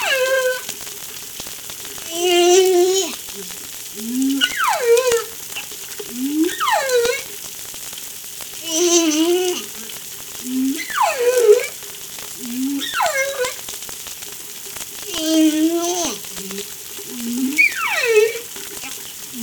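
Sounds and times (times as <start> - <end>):
humpback whale song off La Réunion: 0.0 - 0.8, 2.0 - 7.4, 8.6 - 11.8, 12.4 - 13.6, 15.0 - 19.4.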